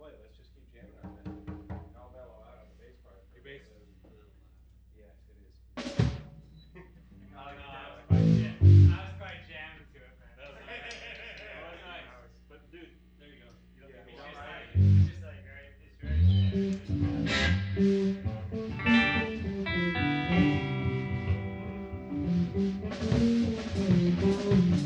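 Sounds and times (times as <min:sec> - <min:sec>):
killer bass: 0:08.1 - 0:09.4, 0:14.4 - 0:24.8
laughter: 0:10.4 - 0:12.2.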